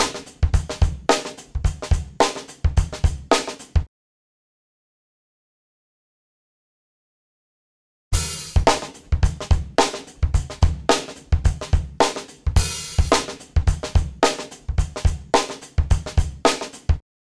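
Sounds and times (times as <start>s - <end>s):
drum before VTC tube booster: 0.0s - 3.9s, 8.2s - 17.0s.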